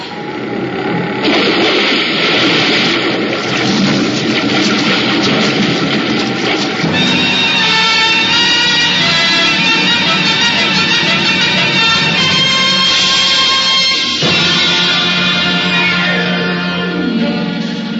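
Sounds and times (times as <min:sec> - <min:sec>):
plane crash-landing on water: 0:01.0 - 0:17.6
shrill metallic whines and screeches: 0:03.7 - 0:17.9.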